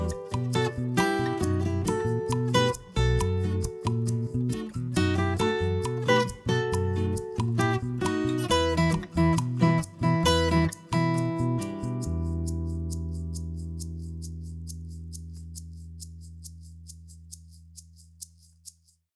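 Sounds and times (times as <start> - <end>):
bossa nova music: 0.0 - 14.7.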